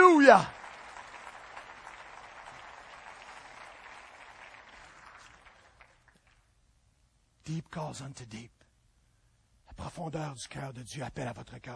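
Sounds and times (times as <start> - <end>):
audience applause: 0.0 - 6.4
speech: 0.3 - 0.6, 7.5 - 8.6, 9.8 - 11.7.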